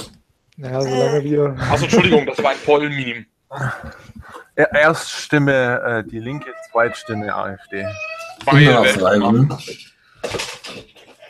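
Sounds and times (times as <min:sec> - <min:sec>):
speech: 0:00.6 - 0:10.9
laughter: 0:01.6 - 0:03.1
cat meowing in complaint: 0:06.4 - 0:09.0.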